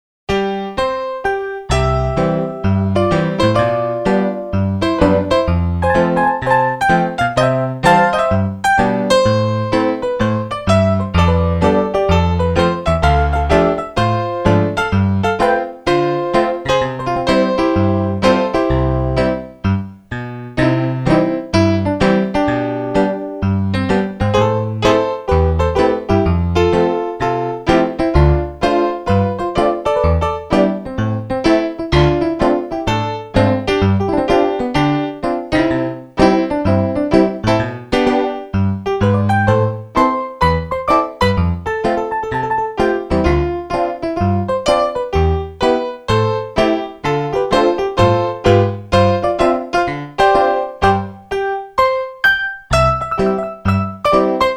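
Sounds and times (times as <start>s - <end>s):
piano instrumental: 0.3s - 54.5s.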